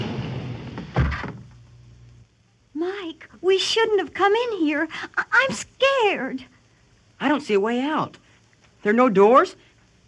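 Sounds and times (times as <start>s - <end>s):
hidden wall sliding closed: 0.0s - 1.6s
speech: 3.5s - 6.5s, 7.2s - 8.2s, 8.8s - 9.6s.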